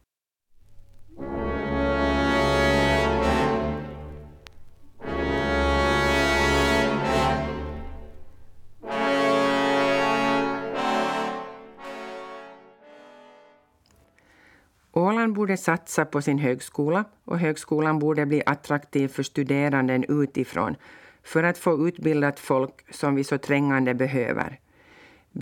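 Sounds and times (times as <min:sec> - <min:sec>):
orchestral symphonic music: 0:00.7 - 0:13.8
speech: 0:15.3 - 0:24.6.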